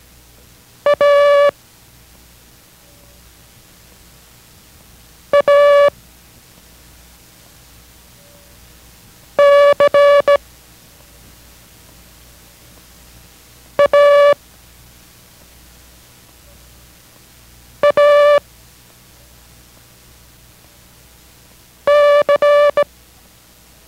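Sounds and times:
faint hiss: 0.0 - 23.8
Morse code practice character tones: 0.9 - 1.5, 5.3 - 5.9, 9.4 - 10.4, 13.8 - 14.4, 17.8 - 18.4, 21.9 - 22.9.

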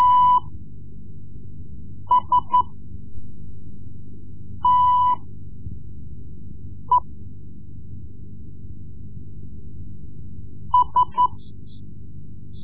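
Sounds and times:
Morse code lessons: 0.0 - 0.5, 2.1 - 2.7, 4.6 - 5.2, 10.8 - 11.4.

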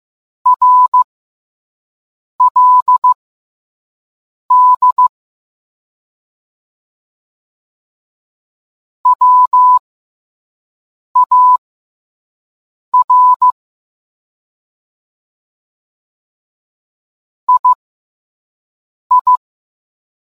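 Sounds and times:
morse code beeps: 0.5 - 1.1, 2.4 - 3.2, 4.5 - 5.1, 9.1 - 9.8, 11.2 - 11.6, 13.0 - 13.6, 17.5 - 17.8, 19.1 - 19.4.

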